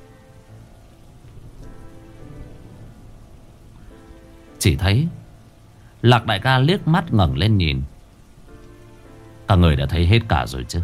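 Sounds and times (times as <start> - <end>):
rain falling: 0.0 - 10.8
thunder rumbling in the night sky: 0.0 - 10.8
speech: 4.6 - 5.2, 6.0 - 7.9, 9.5 - 10.8.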